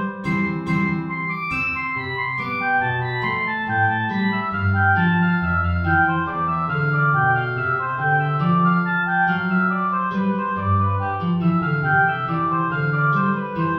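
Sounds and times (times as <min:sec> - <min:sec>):
guitar: 0:00.0 - 0:13.7
oboe: 0:00.0 - 0:13.7
hornpipe: 0:00.3 - 0:13.7.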